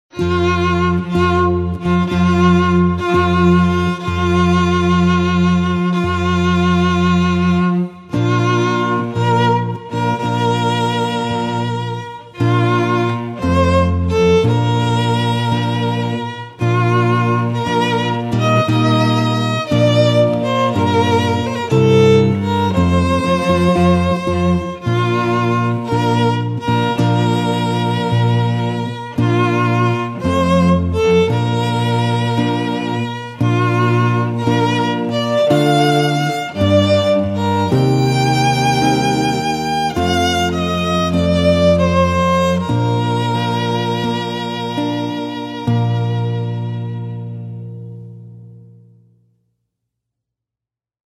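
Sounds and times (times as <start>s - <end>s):
trio playing: 0.1s - 48.0s.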